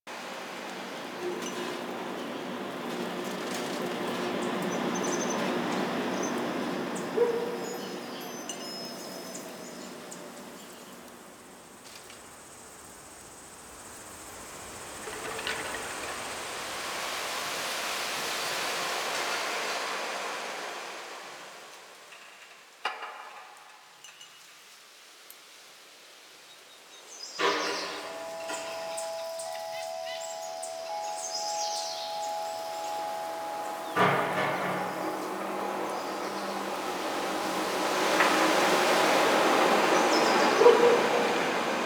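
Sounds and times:
summer outdoor ambience: 0:00.1 - 0:41.8.

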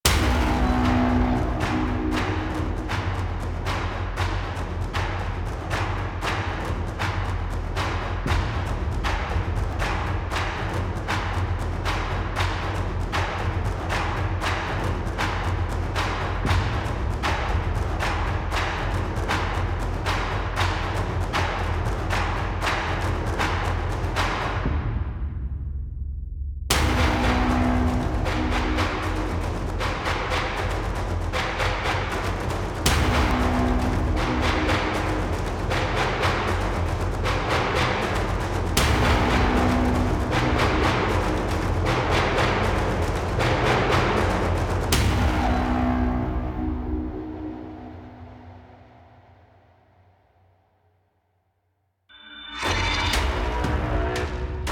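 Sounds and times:
heavy blades large percussion: 0:00.0 - 0:26.0, 0:26.7 - 0:49.0, 0:52.2 - 0:54.7.

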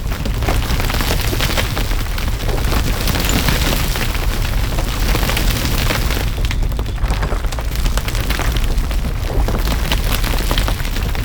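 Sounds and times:
boulder rolling trap: 0:00.0 - 0:11.2.

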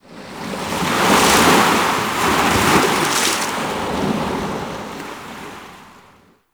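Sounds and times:
ocean wave crashing: 0:01.1 - 0:04.0.

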